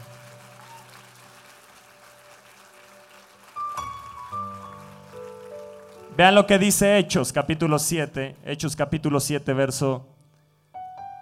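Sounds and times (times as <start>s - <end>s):
audience applause: 0.0s - 6.7s
speech: 6.2s - 10.1s.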